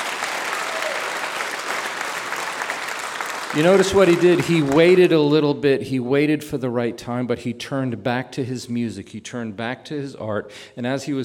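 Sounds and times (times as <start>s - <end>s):
audience applause: 0.0s - 5.2s
speech: 3.5s - 11.2s.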